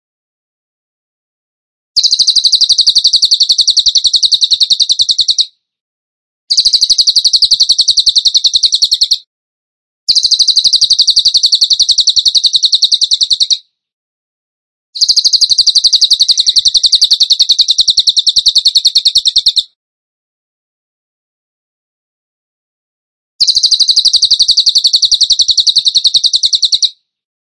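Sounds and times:
bird high trill: 2.0 - 5.5, 6.5 - 9.2, 10.1 - 13.6, 15.0 - 19.8, 23.4 - 27.0.

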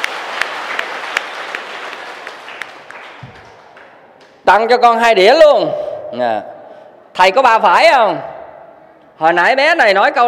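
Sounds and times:
audience applause at a Buddhist Dharma lecture: 0.0 - 3.9
speech: 4.5 - 6.5, 7.2 - 8.3, 9.2 - 10.2.

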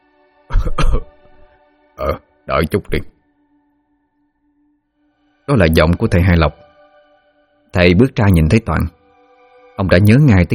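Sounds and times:
dry cough from inside a house: 0.5 - 1.2
speech: 2.0 - 3.1, 5.5 - 6.6, 7.7 - 9.0, 9.8 - 10.5.

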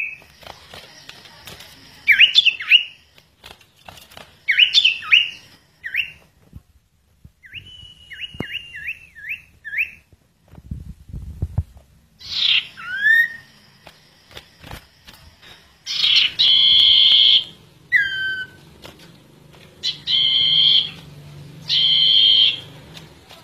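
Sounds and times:
bird song of long and slurred whistles: 2.1 - 3.0, 4.5 - 6.2, 7.4 - 10.1, 12.2 - 13.5, 15.8 - 18.6, 19.8 - 22.9.

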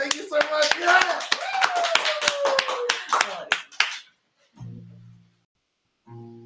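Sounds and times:
audience applause: 0.0 - 4.1.

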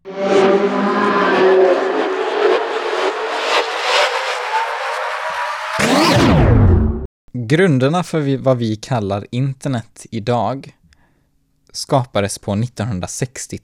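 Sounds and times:
time machine departure sound effect rising whirring drone: 0.0 - 7.1
time machine departure loud swooshing sweep: 0.1 - 7.1
speech: 7.5 - 10.8, 11.7 - 13.6.

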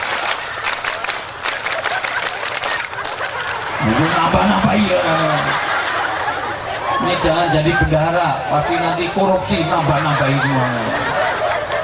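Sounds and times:
group clapping a scout rhythm pattern: 0.0 - 3.7
laughter: 0.0 - 11.8
speech: 3.9 - 5.7, 7.0 - 11.1.

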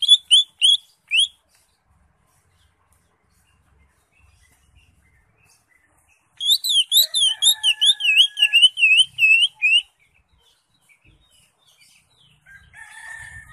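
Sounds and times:
Greater Green Leafbird singing varied phrases: 0.0 - 12.8.

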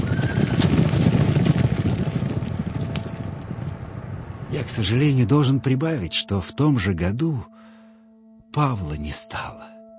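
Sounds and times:
herd of horses galloping past: 0.0 - 3.9
speech: 4.7 - 7.6, 8.5 - 9.7.

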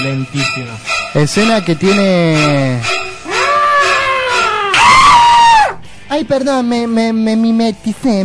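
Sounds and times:
speech: 0.1 - 3.0, 6.2 - 8.2
person imitating a horror-film scream: 3.2 - 5.8.

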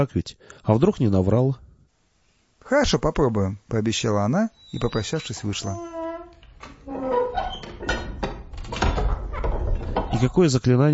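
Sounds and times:
speech: 0.0 - 1.6, 2.7 - 6.0, 10.2 - 10.9
door creaking shut: 4.6 - 10.3
clattering: 5.0 - 10.4.

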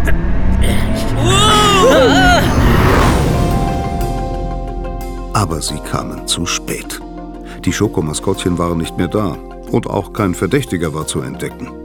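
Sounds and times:
car speeding off fast: 0.0 - 4.6
speech: 5.6 - 7.0, 7.6 - 11.8.

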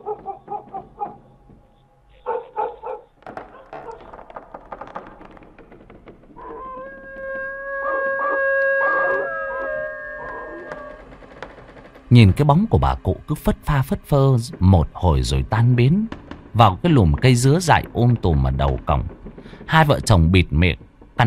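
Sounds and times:
dog barking and howling: 0.0 - 1.3, 2.2 - 4.2, 6.4 - 11.1
speech: 12.2 - 21.2.

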